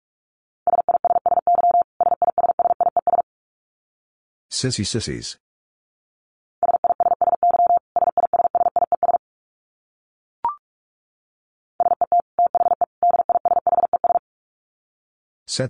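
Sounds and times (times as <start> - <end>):
Morse code tones at 45 wpm: 0.7 - 3.2, 6.6 - 9.2, 11.8 - 14.2
speech: 4.5 - 5.5.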